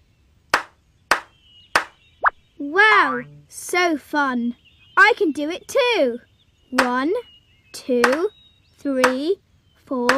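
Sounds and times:
hands clapping: 0.6s - 1.9s
speech: 2.6s - 10.1s.

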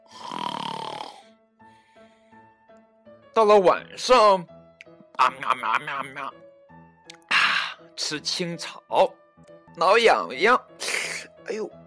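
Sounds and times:
storyteller imitating snoring: 0.0s - 1.3s
speech: 3.4s - 4.5s, 5.2s - 6.4s, 8.0s - 9.2s, 9.8s - 10.9s, 11.5s - 11.8s.

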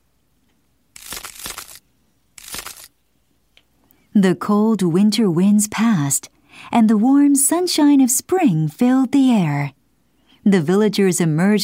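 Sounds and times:
dry crunching cracks: 1.0s - 1.8s, 2.4s - 2.9s
speech: 4.2s - 9.8s, 10.4s - 11.6s.

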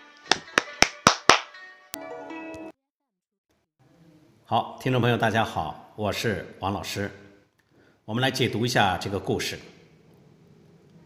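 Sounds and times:
hand claps: 0.2s - 1.6s
speech: 4.5s - 7.2s, 8.1s - 9.8s.

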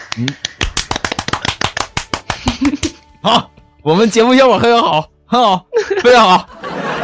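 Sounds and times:
applause: 0.0s - 2.9s
speech: 0.2s - 0.6s, 2.6s - 6.5s
laughter: 2.4s - 3.5s, 5.7s - 7.0s.

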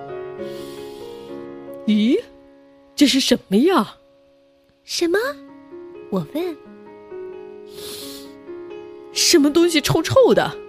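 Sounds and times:
speech: 0.4s - 0.8s, 1.9s - 2.2s, 3.0s - 4.0s, 4.8s - 5.4s, 6.1s - 6.6s, 9.2s - 10.6s
hard sniffing through the nose: 0.4s - 1.4s, 7.7s - 8.4s.

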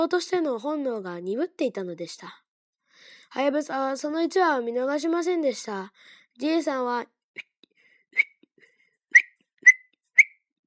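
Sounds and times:
speech: 0.0s - 2.4s, 3.3s - 7.5s
lip whistle calling a tame goose: 8.1s - 8.4s, 9.1s - 10.5s.

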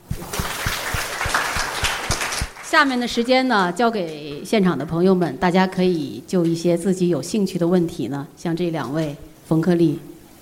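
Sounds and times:
applause: 0.0s - 3.5s
speech: 2.7s - 10.1s.

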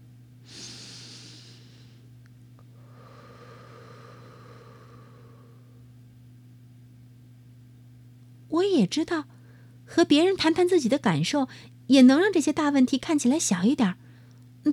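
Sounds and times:
steady low hum: 0.0s - 11.8s
slow deep breath: 0.5s - 2.1s, 2.8s - 5.9s, 9.3s - 9.8s
speech: 8.5s - 9.3s, 9.9s - 14.0s.

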